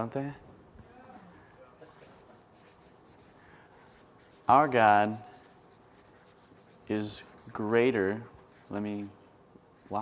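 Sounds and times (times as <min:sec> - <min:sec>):
speech: 0:00.0 - 0:00.4, 0:04.5 - 0:05.3, 0:06.9 - 0:09.2, 0:09.9 - 0:10.0
marker or chalk scratching on a board: 0:01.5 - 0:09.2, 0:09.8 - 0:10.0.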